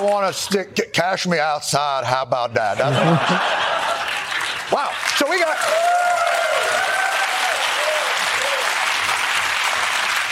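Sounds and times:
speech: 0:00.0 - 0:03.7, 0:04.7 - 0:06.1
laughter: 0:02.6 - 0:04.8
audience applause: 0:03.1 - 0:10.3.

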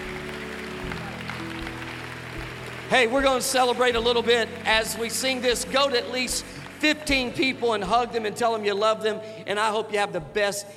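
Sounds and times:
audience clapping: 0:00.0 - 0:08.6
sustained low instrumental tones: 0:00.0 - 0:09.0
speech: 0:02.9 - 0:10.7.

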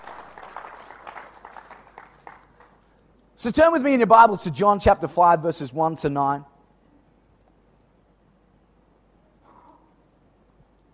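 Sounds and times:
crowd clapping: 0:00.0 - 0:03.0
speech: 0:03.4 - 0:06.5.

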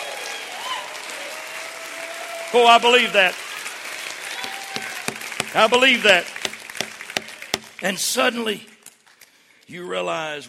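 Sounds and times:
audience clapping their hands: 0:00.0 - 0:07.8
speech: 0:02.5 - 0:03.4, 0:05.5 - 0:06.4, 0:07.8 - 0:08.7, 0:09.7 - 0:10.4.

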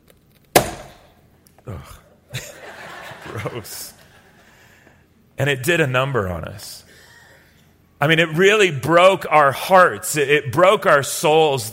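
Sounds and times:
hammer smashing a watermelon: 0:00.6 - 0:01.1
speech: 0:01.7 - 0:02.5, 0:03.3 - 0:04.0, 0:05.4 - 0:06.9, 0:08.0 - 0:11.7
laughter: 0:02.3 - 0:04.7.

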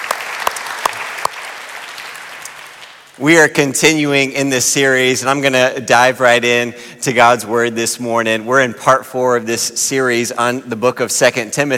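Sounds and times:
audience applauding: 0:00.0 - 0:03.2
speech: 0:03.2 - 0:11.7.

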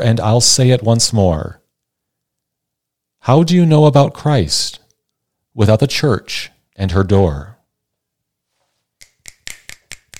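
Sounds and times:
speech: 0:00.0 - 0:01.6, 0:03.2 - 0:04.8, 0:05.6 - 0:07.5
hand claps: 0:09.0 - 0:10.1.

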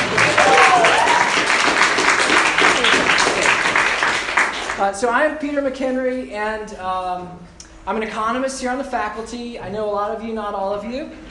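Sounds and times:
faint voices and cheers: 0:00.0 - 0:01.4
audience applause: 0:00.0 - 0:04.8
speech: 0:04.8 - 0:11.2.

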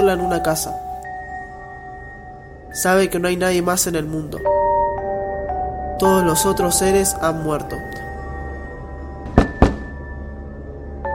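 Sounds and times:
faint tonal sound: 0:00.0 - 0:11.1
low steady hum: 0:00.0 - 0:11.1
speech: 0:00.1 - 0:00.9, 0:02.7 - 0:04.6, 0:06.0 - 0:08.0
knocking on a door: 0:09.3 - 0:10.0.

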